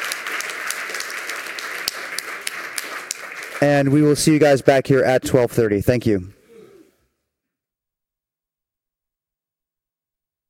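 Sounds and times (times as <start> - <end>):
audience applause: 0.0 - 4.8
speech: 3.6 - 6.4.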